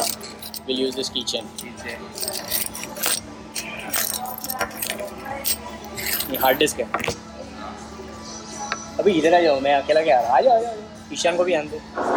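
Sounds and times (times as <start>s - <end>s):
keychain jangling: 0.0s - 7.1s
speech: 0.7s - 2.8s, 5.4s - 7.3s, 9.0s - 12.1s.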